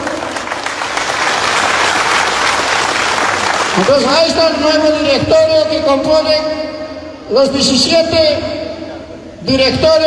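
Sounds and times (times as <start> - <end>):
crowd applause: 0.0 - 4.1
speech: 3.8 - 6.6, 7.3 - 8.6, 9.5 - 10.0.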